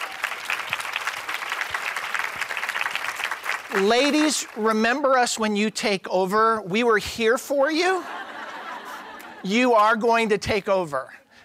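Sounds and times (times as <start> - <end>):
audience applause: 0.0 - 4.7
speech: 3.7 - 8.2, 9.4 - 11.2
laughter: 7.8 - 9.7.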